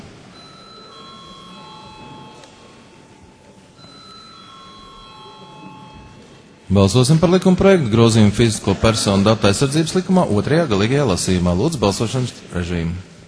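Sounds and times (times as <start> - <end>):
parliament voting call bell: 0.3 - 2.7, 3.8 - 6.3
speech: 6.7 - 13.1.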